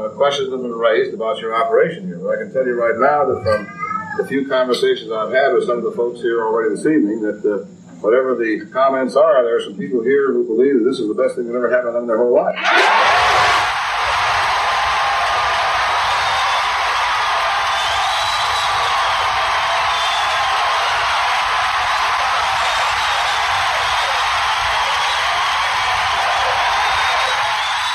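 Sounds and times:
speech: 0.0 - 13.1
crowd applauding: 12.6 - 27.9
whoops and whistles: 15.2 - 27.9.

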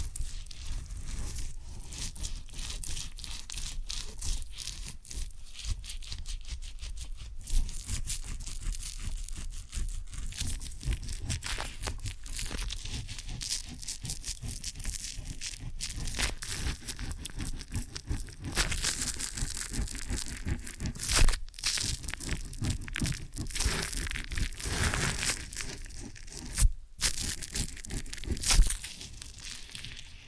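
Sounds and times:
ear and scalp massage rubbing and crinkling: 0.0 - 30.2
loud crackle: 0.0 - 30.2.

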